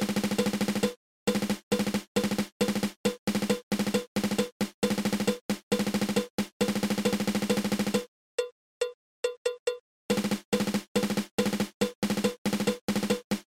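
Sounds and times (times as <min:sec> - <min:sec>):
drum triple stroke roll: 0:00.0 - 0:08.1, 0:10.1 - 0:13.4.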